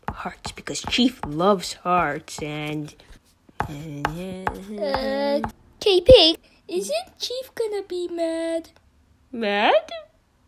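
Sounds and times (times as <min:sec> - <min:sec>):
marker tapping: 0:00.0 - 0:05.6
speech: 0:00.2 - 0:10.0.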